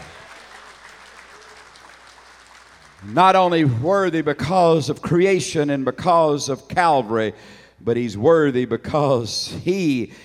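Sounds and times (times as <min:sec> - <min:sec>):
audience clapping hands: 0:00.0 - 0:03.8
speech: 0:03.0 - 0:10.2.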